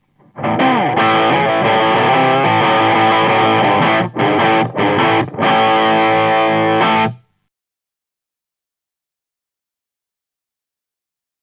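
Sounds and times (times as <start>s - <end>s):
electric guitar on bridge pickup through a three-channel amp on full channel two: 0.2s - 7.2s.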